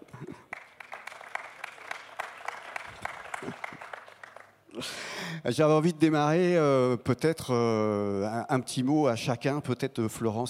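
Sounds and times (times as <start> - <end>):
audience applause: 0.2 - 4.6
speech: 4.8 - 10.4.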